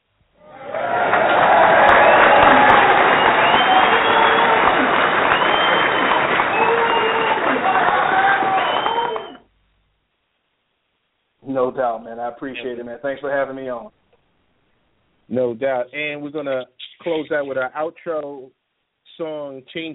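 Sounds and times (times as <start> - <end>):
shouts and whoops: 0.4 - 9.4
recorded crowd clapping and cheering: 0.4 - 9.5
speech: 11.8 - 14.0, 15.3 - 18.6, 19.2 - 19.9.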